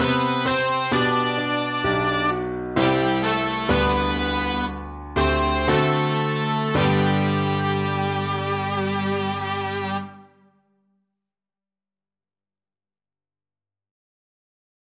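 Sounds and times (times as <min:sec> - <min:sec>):
piano melody in G: 0:00.0 - 0:10.5.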